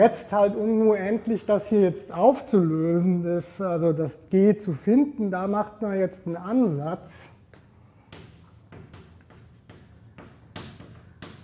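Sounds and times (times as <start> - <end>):
speech: 0.0 - 7.3
handwriting a Fourier integral: 7.5 - 11.4.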